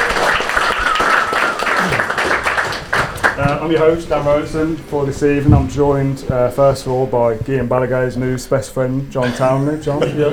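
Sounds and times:
live studio audience applause: 0:00.0 - 0:04.2
laughter: 0:00.7 - 0:02.4, 0:09.2 - 0:10.3
speech: 0:03.6 - 0:10.3.

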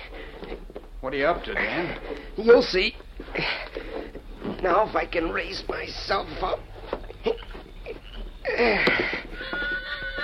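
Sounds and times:
speech: 0:01.0 - 0:03.6, 0:04.6 - 0:07.4, 0:08.5 - 0:09.6
horse whinnying: 0:07.1 - 0:10.2.

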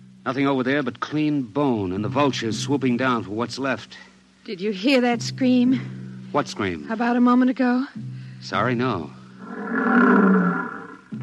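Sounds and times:
speech: 0:00.2 - 0:09.2
lions roaring: 0:09.4 - 0:11.2.

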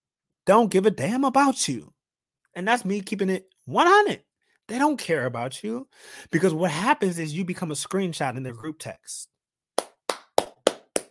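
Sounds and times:
speech: 0:00.5 - 0:02.0, 0:02.6 - 0:09.3
hand clap: 0:09.8 - 0:11.1.

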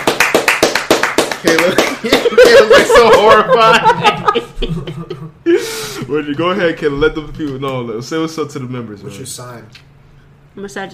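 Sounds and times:
people clapping: 0:00.0 - 0:03.0
speech: 0:01.4 - 0:09.9, 0:10.6 - 0:10.9
laughter: 0:01.6 - 0:05.8.

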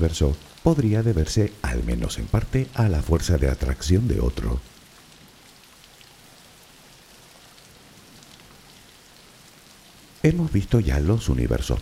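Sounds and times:
speech: 0:00.0 - 0:04.8, 0:10.2 - 0:11.7
steady rain: 0:00.0 - 0:11.7.

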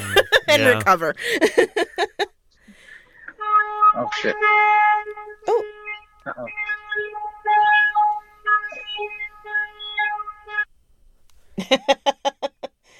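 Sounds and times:
laughter: 0:00.0 - 0:02.3
speech: 0:00.4 - 0:02.2, 0:04.0 - 0:05.7, 0:06.3 - 0:07.7, 0:11.6 - 0:12.4
car alarm beeping: 0:03.6 - 0:10.7.

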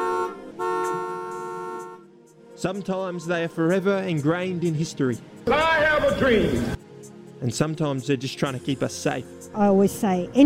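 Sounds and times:
car horn honking: 0:00.0 - 0:02.2
speech: 0:02.6 - 0:06.8, 0:07.4 - 0:10.4.

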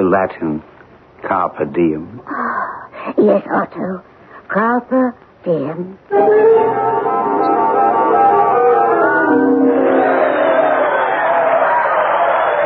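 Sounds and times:
speech: 0:00.1 - 0:07.1, 0:09.3 - 0:10.2
large crowd cheering outside a window: 0:06.1 - 0:12.6.

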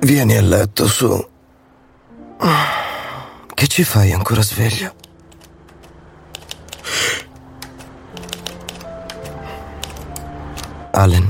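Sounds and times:
speech: 0:00.0 - 0:01.3, 0:02.4 - 0:02.9, 0:03.6 - 0:05.0, 0:11.0 - 0:11.2
typewriter keys clacking: 0:04.9 - 0:10.8.

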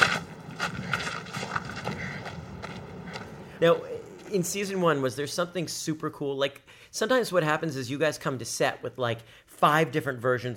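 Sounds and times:
horse-drawn carriage hooves clip-clopping: 0:00.0 - 0:04.4
low rolling rumble: 0:00.0 - 0:04.8
speech: 0:03.6 - 0:10.5.

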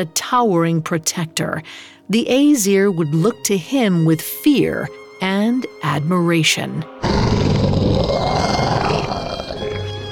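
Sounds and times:
speech: 0:00.0 - 0:08.4
wolf growling: 0:07.0 - 0:09.9.

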